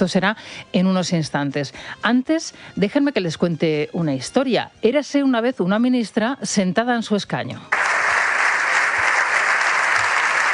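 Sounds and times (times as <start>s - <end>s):
speech: 0.0s - 7.9s
applause in parliament: 7.7s - 10.5s.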